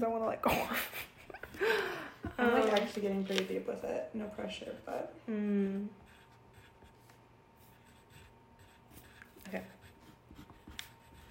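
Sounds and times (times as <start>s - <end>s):
speech: 0.0s - 1.8s, 3.0s - 6.0s, 9.5s - 9.8s
pen scratching on paper drawing a bear: 6.0s - 11.2s.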